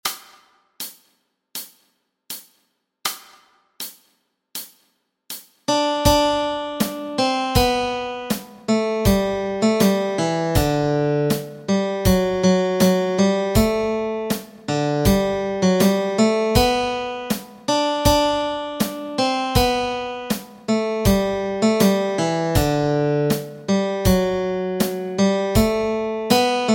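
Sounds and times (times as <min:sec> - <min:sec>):
melody: 0:05.7 - 0:26.7.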